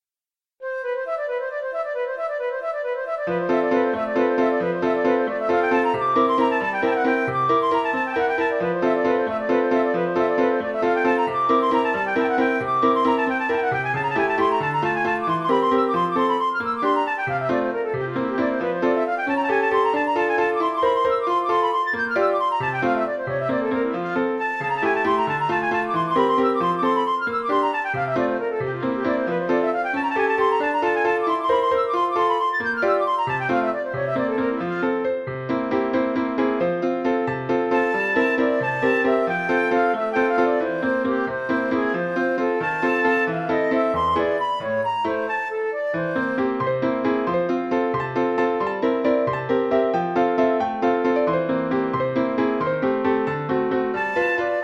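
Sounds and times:
waltz music: 0:00.7 - 0:54.6.

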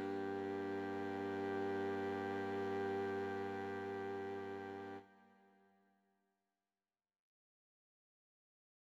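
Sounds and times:
sonata prelude: 0:00.0 - 0:05.2.

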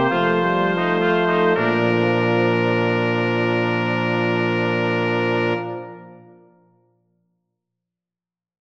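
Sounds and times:
chorus for brass quartet: 0:00.0 - 0:06.4.

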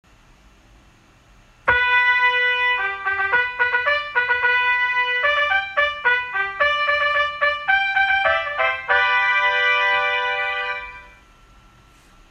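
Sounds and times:
fanfare: 0:01.7 - 0:11.2.

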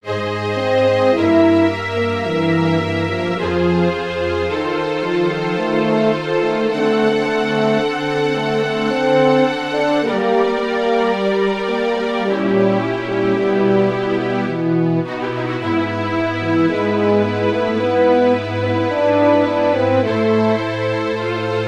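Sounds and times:
horn: 0:00.0 - 0:21.6
strings: 0:00.0 - 0:21.6.

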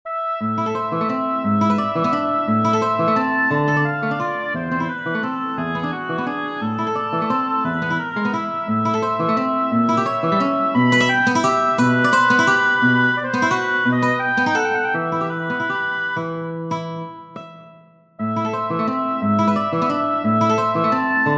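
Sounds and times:
oboe playing a serenade: 0:00.1 - 0:16.8, 0:18.2 - 0:21.3
guitar playing a serenade: 0:00.1 - 0:21.3.

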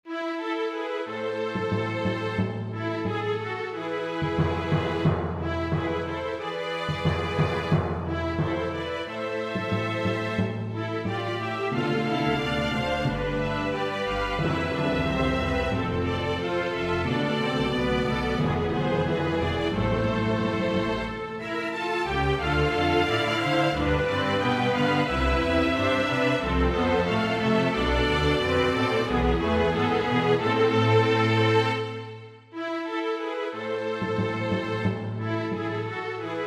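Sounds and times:
march music: 0:00.8 - 0:36.4.

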